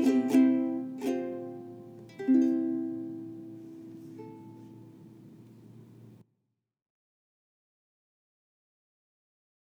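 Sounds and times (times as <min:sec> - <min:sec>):
ukulele: 0:00.0 - 0:06.2.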